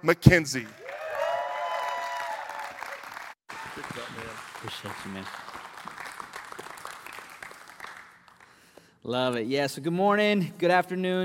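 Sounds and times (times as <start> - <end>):
speech: 0.0 - 0.8, 4.6 - 5.5, 9.0 - 11.2
audience applause welcoming a preacher at a church weekend service: 0.3 - 8.8.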